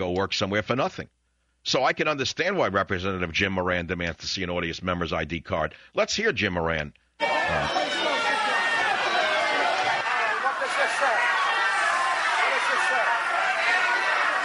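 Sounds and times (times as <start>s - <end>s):
speech: 0.0s - 8.1s
people screaming at a politician: 7.2s - 14.4s.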